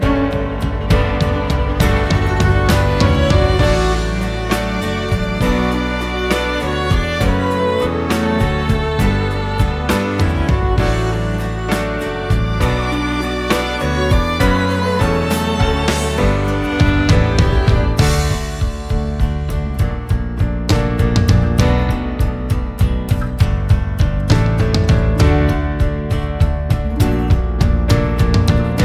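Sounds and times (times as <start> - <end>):
instrumental music: 0.0 - 28.8.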